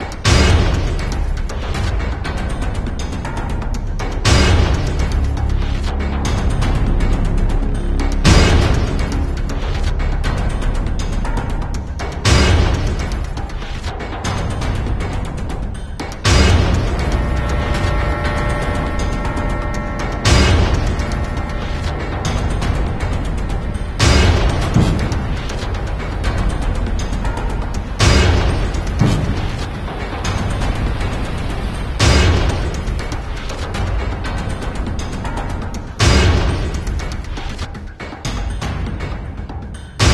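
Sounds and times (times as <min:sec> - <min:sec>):
action music: 0:00.0 - 0:40.1.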